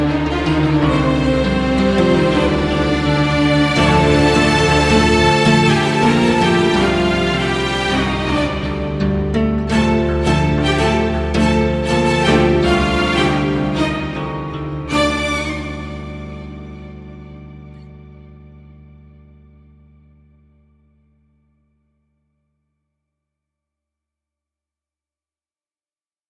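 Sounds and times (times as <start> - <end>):
Arabic string instruments: 0.0 - 18.7.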